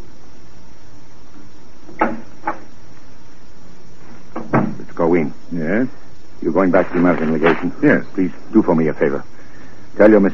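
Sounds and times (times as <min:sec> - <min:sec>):
steady low hiss: 0:00.0 - 0:10.3
door opening and closing: 0:01.9 - 0:02.7, 0:04.3 - 0:04.8
speech: 0:06.6 - 0:09.4, 0:10.0 - 0:10.3.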